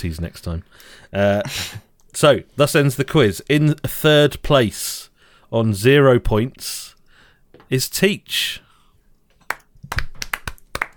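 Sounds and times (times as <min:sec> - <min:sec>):
speech: 0:00.0 - 0:07.0, 0:07.7 - 0:08.6
hand claps: 0:09.4 - 0:10.9.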